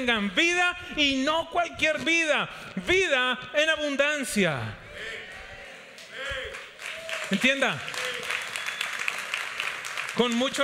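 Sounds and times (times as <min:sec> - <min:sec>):
speech: 0:00.0 - 0:05.2, 0:07.3 - 0:08.0, 0:10.2 - 0:10.6
crowd applauding: 0:06.0 - 0:10.6.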